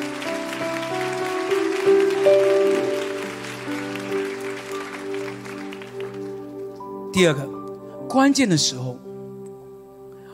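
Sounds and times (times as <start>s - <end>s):
audience clapping: 0.0s - 7.2s
sustained keyboard chords: 0.0s - 10.3s
speech: 7.2s - 9.1s.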